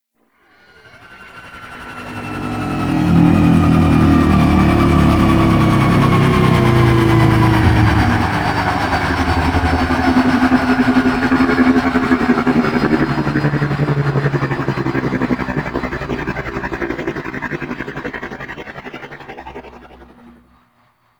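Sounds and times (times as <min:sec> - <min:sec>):
spaceship winding down in an asteroid field: 0:00.8 - 0:17.2.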